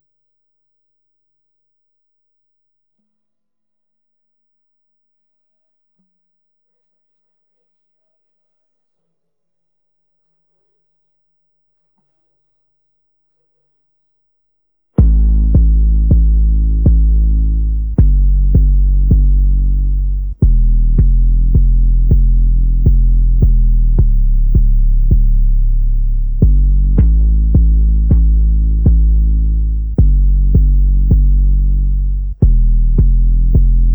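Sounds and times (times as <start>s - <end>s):
bass: 15.0s - 33.9s.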